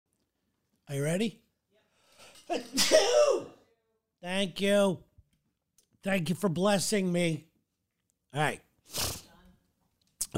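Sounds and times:
speech: 0.9 - 1.4, 2.5 - 3.6, 4.2 - 5.1, 6.0 - 7.5, 8.3 - 9.1
sneezing: 2.5 - 3.6, 8.9 - 9.3.

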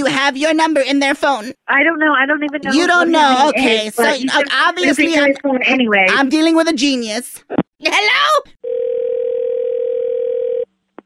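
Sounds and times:
speech: 0.2 - 8.8
telephone dial tone after the caller hung up: 8.6 - 10.7.

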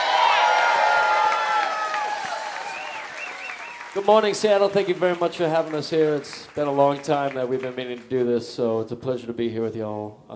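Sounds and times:
crowd at the Gathering Space in Seattle cheering: 0.0 - 8.1
crowd clapping at the Gathering Space in Seattle: 0.0 - 8.6
whoops and whistles from the crowd: 1.6 - 3.9
speech: 4.0 - 10.3.

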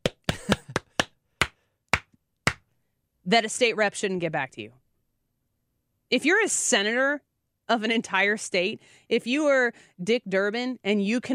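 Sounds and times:
hand claps: 0.0 - 2.7
speech: 3.3 - 4.8, 6.1 - 11.3.

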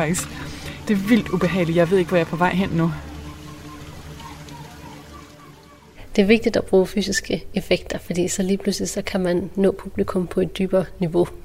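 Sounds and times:
speech: 0.0 - 3.1, 6.2 - 11.4
water sound effect in immersive experience: 0.0 - 6.7.

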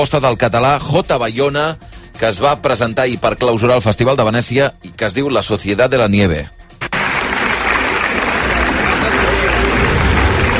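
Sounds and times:
speech: 0.0 - 6.6
festival audience ovation applause after film screening: 6.9 - 10.5.

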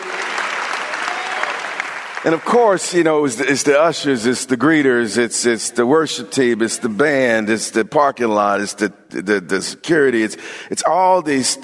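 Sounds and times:
audience applause: 0.0 - 2.8
speech: 2.2 - 11.6.

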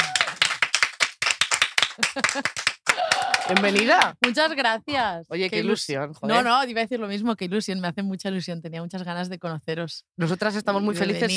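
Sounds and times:
people cheering: 0.0 - 0.9, 1.6 - 4.1
audience applauding: 0.0 - 4.4
speech: 2.0 - 2.7, 3.5 - 11.3.

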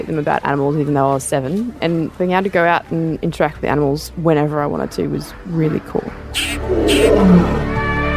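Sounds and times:
speech: 0.1 - 7.7
big cat roaring: 6.6 - 8.0.

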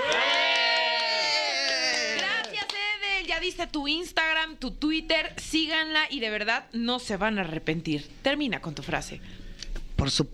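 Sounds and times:
crowd ovation cheering and whooping: 0.0 - 2.6
audience ovation clapping: 0.0 - 3.0
speech: 3.5 - 9.4, 10.0 - 10.3.

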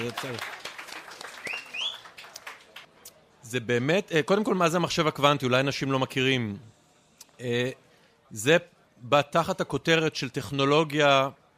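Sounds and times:
speech: 0.0 - 0.6, 3.5 - 6.8, 7.4 - 11.4
audience applause: 0.0 - 2.9.

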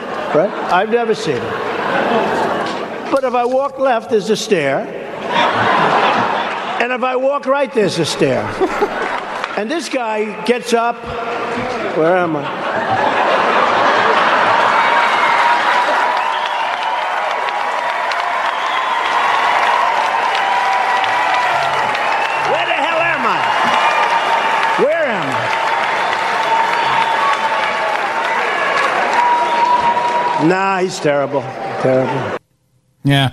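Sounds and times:
laughter: 0.1 - 3.2, 5.1 - 7.1, 7.7 - 9.7, 11.0 - 16.3, 21.2 - 23.8
speech: 0.3 - 9.0, 9.6 - 11.4, 12.0 - 13.1, 30.4 - 32.4, 33.0 - 33.3
crowd cheering and whooping: 5.2 - 6.8, 8.2 - 9.6, 12.5 - 32.4
audience applause: 8.2 - 9.7, 12.6 - 32.3.

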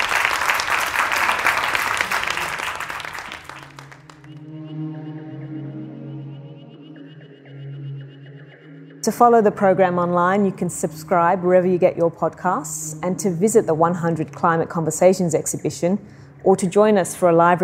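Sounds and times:
audience round of applause: 0.0 - 4.4
speech: 9.0 - 17.6.

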